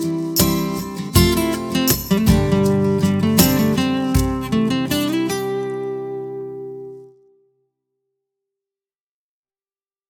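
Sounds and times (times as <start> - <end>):
percussion: 0.0 - 5.8.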